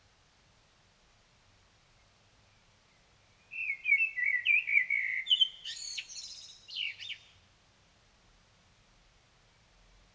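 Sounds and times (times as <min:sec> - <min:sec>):
common blackbird song phrase: 0:02.5 - 0:07.4.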